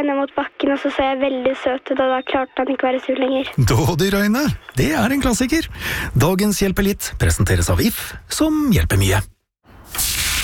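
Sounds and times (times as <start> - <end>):
speech: 0.0 - 9.3
burger sizzling on a grill: 9.9 - 10.4.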